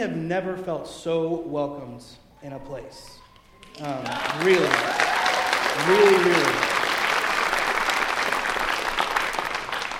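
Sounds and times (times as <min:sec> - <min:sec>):
speech: 0:00.0 - 0:03.2, 0:03.8 - 0:06.8
crowd clapping: 0:03.4 - 0:09.9.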